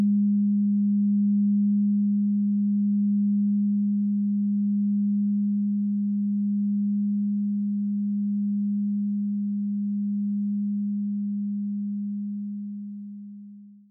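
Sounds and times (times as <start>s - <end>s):
throat chakra singing bowl G note tone at 432hz: 0.0s - 13.8s.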